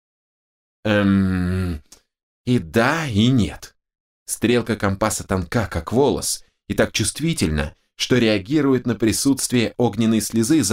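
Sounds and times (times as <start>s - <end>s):
speech: 0.8s - 1.5s, 2.4s - 3.7s, 4.3s - 10.7s
man mumbling inarticulately: 0.9s - 3.2s.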